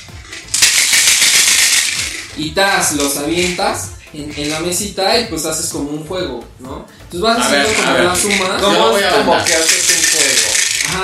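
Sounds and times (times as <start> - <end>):
dice being shaken and rattled: 0.0 - 4.8, 7.5 - 11.0
speech: 2.4 - 9.8.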